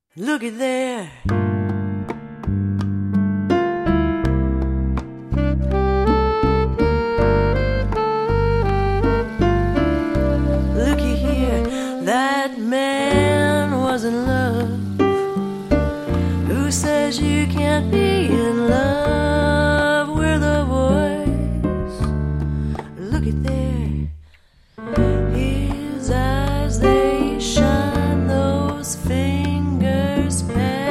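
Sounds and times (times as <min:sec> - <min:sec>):
jazz music: 0:01.3 - 0:24.0, 0:24.8 - 0:30.9.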